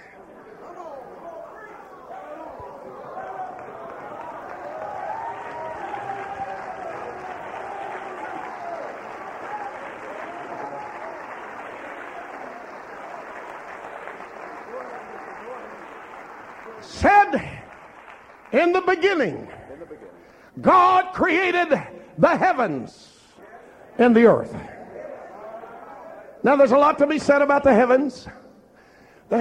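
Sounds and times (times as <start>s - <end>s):
large crowd shouting: 0.0s - 13.3s
large crowd applauding: 2.0s - 20.2s
speech: 17.0s - 17.5s, 18.5s - 19.6s, 20.6s - 23.1s, 24.0s - 24.7s, 26.4s - 28.4s.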